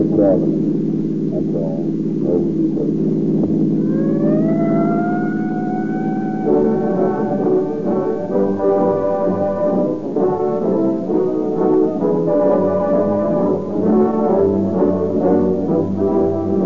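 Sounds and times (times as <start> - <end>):
speech: 0.2 - 3.7
police car sirens screaming: 3.8 - 16.6.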